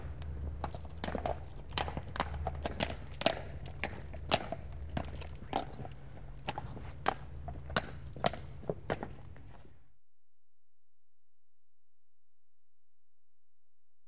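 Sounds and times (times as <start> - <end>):
one horse and cart at walk approaching: 0.0 - 9.7.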